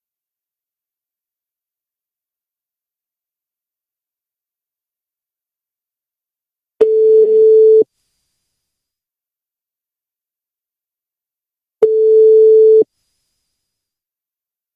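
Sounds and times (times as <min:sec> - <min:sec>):
telephone line beeps after dropped call: 0:06.8 - 0:07.8, 0:11.8 - 0:12.9.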